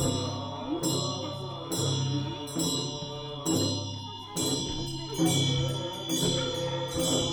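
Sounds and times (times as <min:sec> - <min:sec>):
voices chanting in a lodge: 0:00.0 - 0:07.3.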